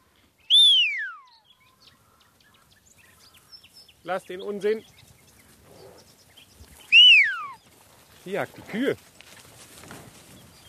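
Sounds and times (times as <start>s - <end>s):
shrill whistle calling a dog: 0.5s - 1.3s, 6.9s - 7.6s
speech: 4.0s - 5.0s, 8.2s - 9.1s.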